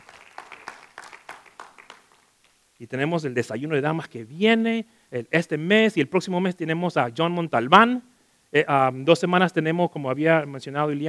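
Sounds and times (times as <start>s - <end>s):
people clapping in praise during a church service: 0.0s - 2.6s
speech: 2.8s - 11.0s.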